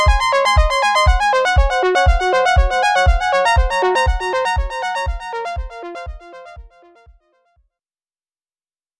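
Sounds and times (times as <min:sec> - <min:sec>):
brass riff with echo: 0:00.0 - 0:07.0.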